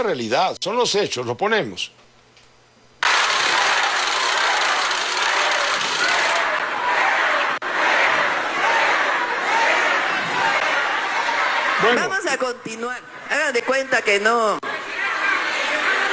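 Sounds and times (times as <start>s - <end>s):
speech: 0.0s - 2.0s, 11.8s - 14.6s
crowd booing: 3.0s - 16.1s.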